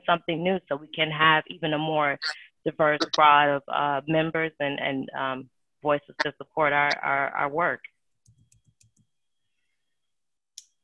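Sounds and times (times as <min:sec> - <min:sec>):
speech: 0:00.1 - 0:07.9
keyboard typing: 0:08.2 - 0:09.2.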